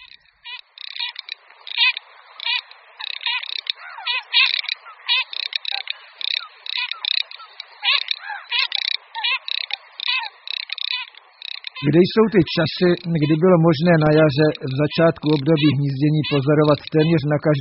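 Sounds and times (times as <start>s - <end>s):
garganey duck giving dry crackling rattles: 0.0s - 17.6s
speech: 11.8s - 17.6s.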